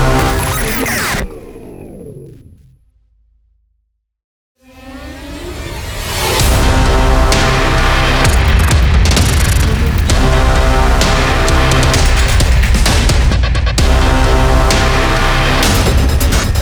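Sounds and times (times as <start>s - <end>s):
epic powerful aggressive industrial logo music: 0.0s - 2.7s, 6.4s - 16.5s.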